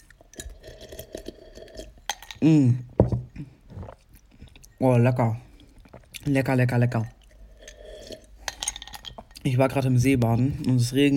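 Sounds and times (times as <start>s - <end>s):
person sipping pomegranate syrup: 0.0s - 4.8s, 7.2s - 8.8s
speech: 2.4s - 2.9s, 4.8s - 5.4s, 6.3s - 7.2s, 9.4s - 11.1s.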